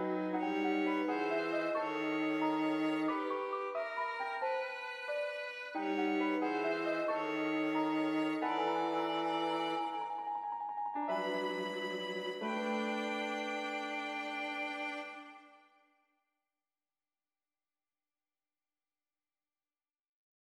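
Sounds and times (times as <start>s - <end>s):
piano in D major: 0.0s - 15.6s
violin in D major: 0.0s - 15.7s.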